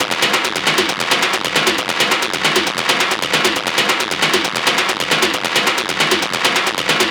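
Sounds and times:
techno percussion loop 135: 0.0s - 7.0s.

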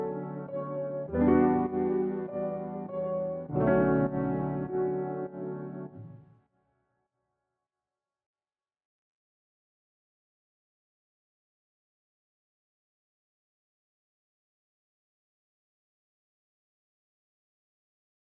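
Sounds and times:
100 BPM E minor piano loop: 0.0s - 6.3s.

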